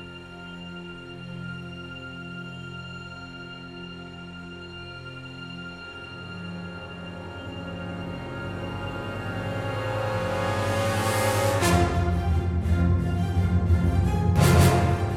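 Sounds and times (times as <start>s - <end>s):
orchestra playing: 6.0s - 15.1s.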